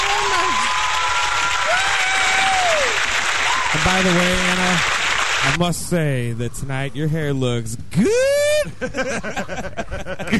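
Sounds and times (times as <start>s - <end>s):
audience applause: 0.0s - 5.6s
speech: 3.8s - 10.3s
laughter: 8.5s - 10.3s.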